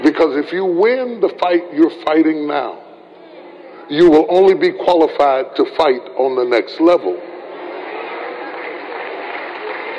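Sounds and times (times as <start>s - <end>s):
speech: 0.2s - 2.8s, 3.9s - 7.3s
audience clapping: 8.1s - 9.9s.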